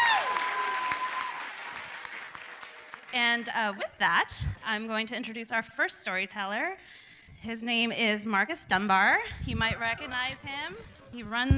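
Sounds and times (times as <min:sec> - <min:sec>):
crowd applauding: 0:00.0 - 0:03.8
speech: 0:03.1 - 0:11.5.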